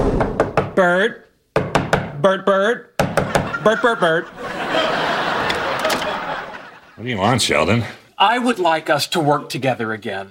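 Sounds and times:
knocking on an office door: 0.1 - 0.8, 1.6 - 2.2, 3.0 - 3.5
speech: 0.8 - 1.3, 2.2 - 4.9, 7.0 - 10.2
laughter: 3.3 - 7.4.

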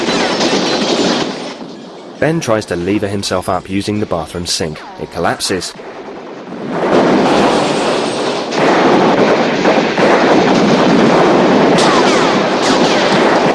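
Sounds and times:
police automatic rifle fire pouring into a house: 0.0 - 1.6, 6.7 - 13.5
speech: 2.2 - 6.0.

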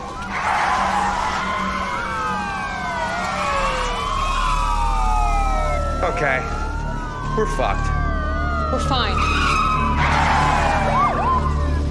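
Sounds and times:
police car sirens: 0.0 - 11.8
speech: 6.1 - 6.6, 7.4 - 8.0, 8.7 - 9.5.

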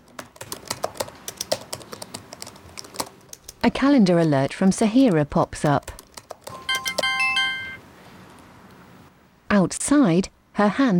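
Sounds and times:
typing an email on a laptop keyboard: 0.0 - 3.8, 4.8 - 7.2
speech: 3.6 - 5.9, 9.6 - 10.9.

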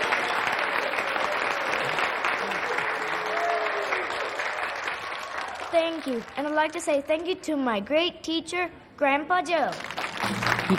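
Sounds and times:
audience applause: 0.0 - 6.7, 9.8 - 10.7
speech: 5.8 - 10.1.

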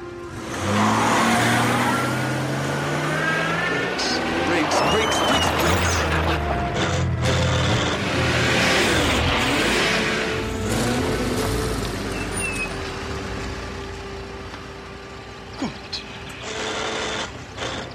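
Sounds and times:
car engine revving while reversing: 0.0 - 17.9.

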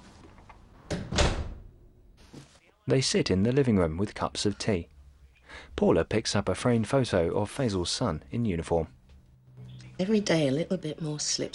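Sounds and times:
front door being shut: 0.9 - 1.7
speech: 2.9 - 4.9, 5.5 - 9.0, 10.0 - 11.5.

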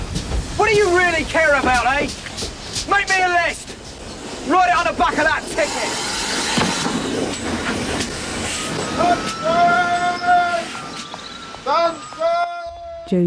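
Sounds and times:
train at a station rumbling and clattering: 0.0 - 13.2
speech: 0.7 - 2.2, 2.9 - 3.7, 4.4 - 6.1, 9.0 - 10.0, 11.6 - 12.4
high drawn-out metallic squeals: 5.8 - 13.2
short tonal chirps: 7.3 - 13.2.

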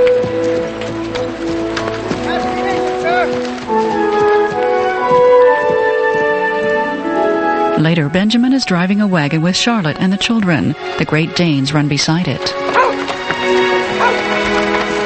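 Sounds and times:
horse hooves clip-clopping as a rider departs: 0.0 - 15.0
sustained music: 0.0 - 15.0
speech: 7.8 - 12.8.

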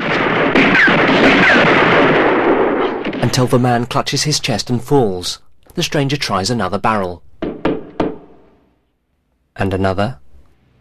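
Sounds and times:
rapid gunshots in a shootout: 0.0 - 3.4
speech: 3.2 - 7.3, 9.6 - 10.2.

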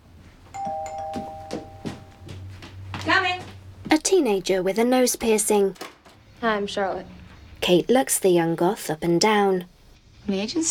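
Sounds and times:
low hum: 0.2 - 10.0
doorbell chiming: 0.6 - 2.5
speech: 4.2 - 9.7, 10.3 - 10.7.

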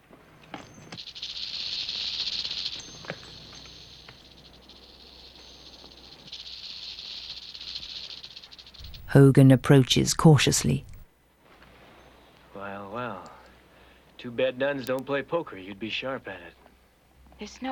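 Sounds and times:
snake rattling: 0.4 - 9.3
speech: 9.1 - 10.9, 14.4 - 16.6, 17.4 - 17.7.

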